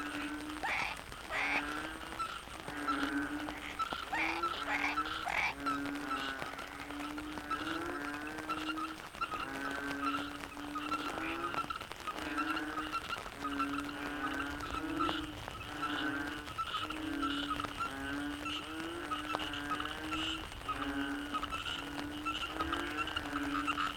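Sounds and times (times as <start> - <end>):
frog chorus: 0.0 - 23.9.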